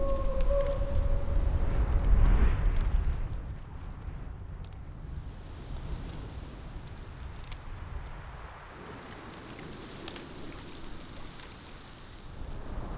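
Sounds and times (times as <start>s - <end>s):
forest ambience: 0.0s - 2.7s, 8.8s - 12.9s.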